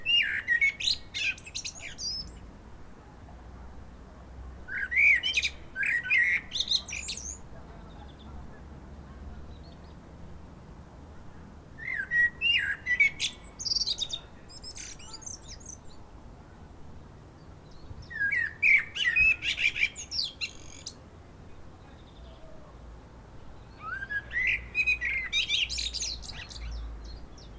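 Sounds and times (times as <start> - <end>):
common blackbird Turdus merula singing: 0.0 - 2.4, 4.7 - 8.4, 11.8 - 16.0, 17.4 - 21.0, 23.6 - 27.5.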